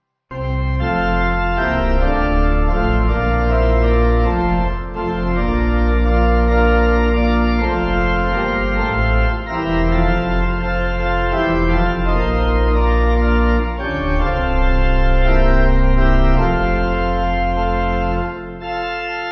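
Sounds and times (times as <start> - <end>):
pipe organ: 0.3 - 19.3.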